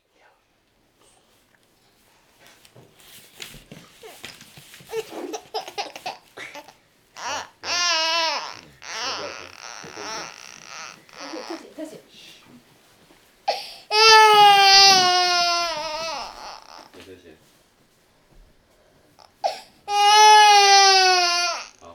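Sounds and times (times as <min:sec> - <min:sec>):
child crying: 0:04.9 - 0:11.8, 0:13.9 - 0:16.9, 0:19.3 - 0:21.8.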